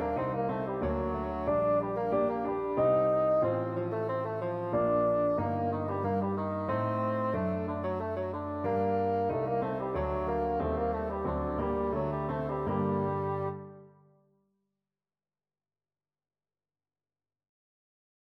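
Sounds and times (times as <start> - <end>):
bassoon playing a rondeau: 0.0 - 13.9.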